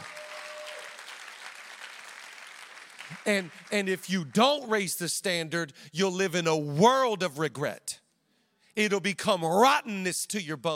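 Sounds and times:
audience clapping: 0.0s - 4.1s
speech: 3.1s - 8.0s, 8.8s - 10.7s.

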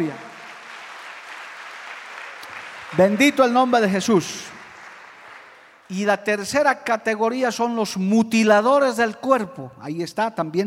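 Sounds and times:
speech: 0.0s - 0.3s, 2.9s - 4.6s, 5.9s - 10.6s
audience applause: 0.0s - 5.9s.

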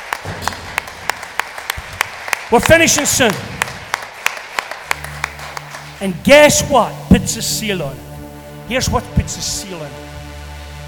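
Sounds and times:
audience applauding: 0.0s - 7.8s
speech: 2.5s - 3.7s, 6.0s - 8.1s, 8.7s - 10.2s.

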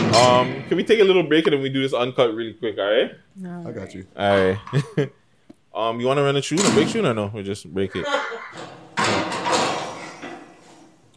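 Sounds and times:
speech: 0.2s - 5.2s, 5.8s - 9.2s
laughter: 4.4s - 5.2s, 7.8s - 8.7s
door slamming shut: 6.6s - 7.1s, 8.5s - 10.5s.

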